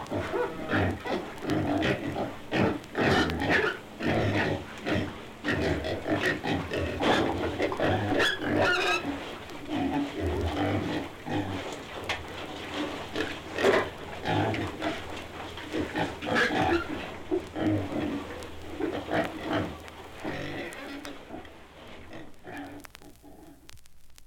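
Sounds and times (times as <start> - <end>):
piglets squealing and grunting: 0.0 - 11.8, 12.7 - 21.5, 22.1 - 23.6.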